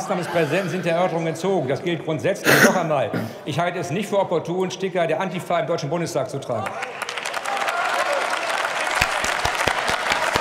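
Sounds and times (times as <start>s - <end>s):
speech: 0.0s - 7.1s
applause in parliament: 6.6s - 10.3s.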